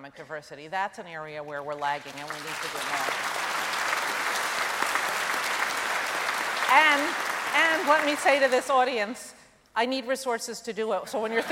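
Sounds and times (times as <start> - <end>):
speech: 0.1 - 4.0, 6.7 - 11.5
audience applause during a speech: 2.2 - 9.0.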